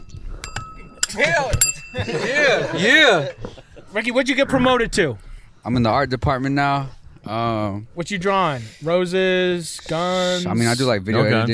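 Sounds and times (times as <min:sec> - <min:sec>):
bell being hit: 0:00.4 - 0:02.8
speech: 0:01.1 - 0:11.5
laughter: 0:01.9 - 0:04.0.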